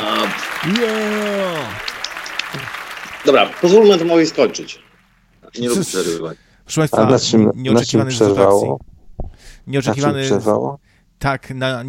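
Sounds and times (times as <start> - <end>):
applause sound effect: 0.0 - 5.4
speech: 0.6 - 1.8, 2.5 - 4.9, 5.5 - 8.9, 9.6 - 11.8.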